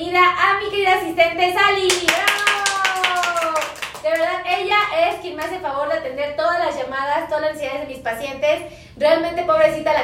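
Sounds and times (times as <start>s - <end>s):
speech: 0.0s - 2.3s, 4.0s - 10.0s
applause: 1.9s - 4.6s.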